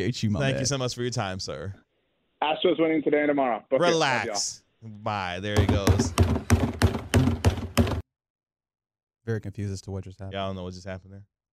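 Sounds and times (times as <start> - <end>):
speech: 0.0 - 1.8, 2.4 - 6.3, 9.3 - 11.4
trash can banging: 5.6 - 8.0.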